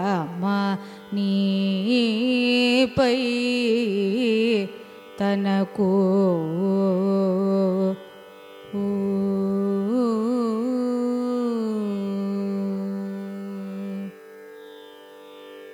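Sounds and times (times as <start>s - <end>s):
carnatic raga music: 0.0s - 15.7s.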